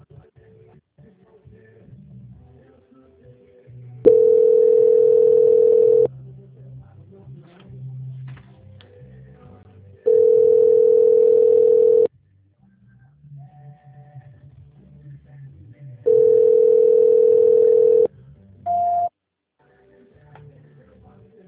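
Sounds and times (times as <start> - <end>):
telephone tones during a call transfer: 4.1 - 6.1, 10.1 - 12.1, 16.1 - 18.1, 18.7 - 19.1.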